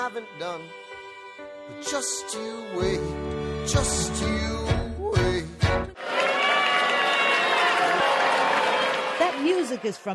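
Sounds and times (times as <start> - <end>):
speech: 0.1 - 0.8, 1.4 - 4.8, 9.5 - 10.1
Broadway theater audience clapping and shouting at a musical: 6.0 - 10.1.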